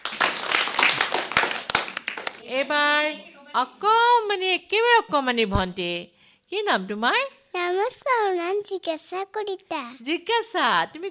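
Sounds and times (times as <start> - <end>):
audience clapping loudly for a child who has just sung: 0.0 - 2.5
speech: 2.5 - 11.0.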